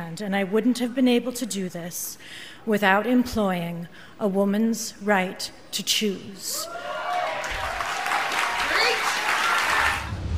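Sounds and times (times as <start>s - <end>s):
speech: 0.1s - 6.9s
audience applause: 6.7s - 10.1s.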